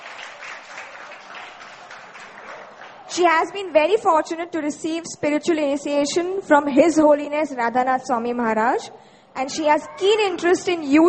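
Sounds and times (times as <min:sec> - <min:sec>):
audience applause: 0:00.0 - 0:03.2
speech: 0:03.2 - 0:11.0.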